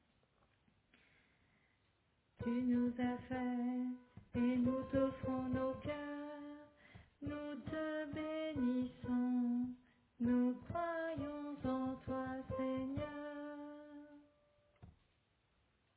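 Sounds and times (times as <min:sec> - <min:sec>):
tenor singing: 0:02.4 - 0:14.3.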